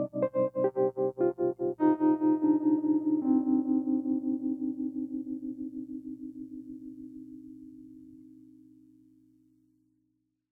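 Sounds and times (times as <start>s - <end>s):
electric piano with heavy vibrato: 0.0s - 8.5s.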